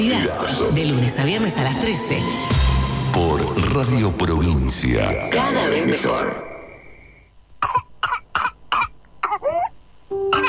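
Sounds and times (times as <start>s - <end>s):
speech: 0.0s - 6.5s
intense whooping cough coughing fit: 7.6s - 9.7s.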